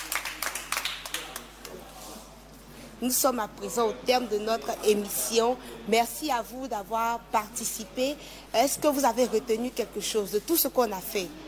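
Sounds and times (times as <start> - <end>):
studio audience scattered hand claps: 0.0 - 1.8
speech: 3.0 - 11.4.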